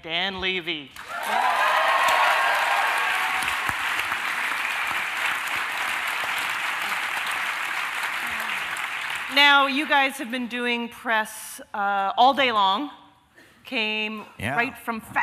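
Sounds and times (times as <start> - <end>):
speech: 0.0 - 1.5, 9.3 - 13.0, 13.7 - 15.2
faint cheers: 1.0 - 3.8
audience applause: 1.0 - 9.6.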